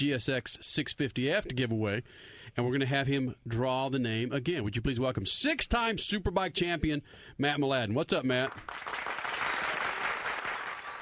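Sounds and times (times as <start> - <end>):
speech: 0.0 - 9.2
studio applause: 8.4 - 10.9.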